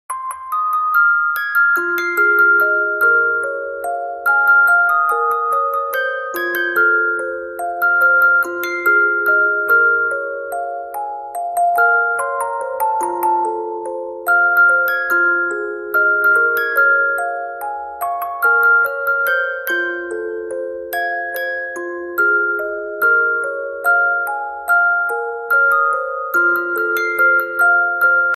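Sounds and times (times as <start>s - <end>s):
music box: 0.1s - 28.3s.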